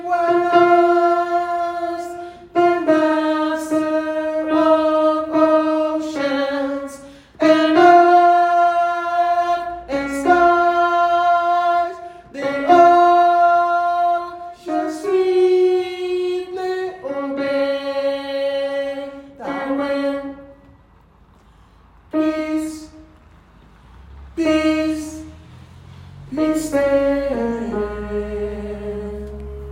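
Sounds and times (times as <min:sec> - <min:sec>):
alt gospel music: 0:00.0 - 0:29.7.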